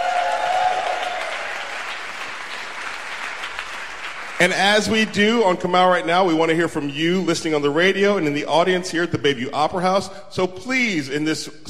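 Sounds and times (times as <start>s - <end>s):
audience applause at the Bayview Opera House: 0.0s - 5.1s
speech: 4.4s - 11.6s.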